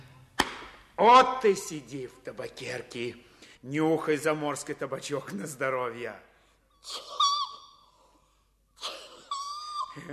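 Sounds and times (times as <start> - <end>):
speech: 1.0 - 7.2, 10.0 - 10.1
sneezing: 8.8 - 9.5.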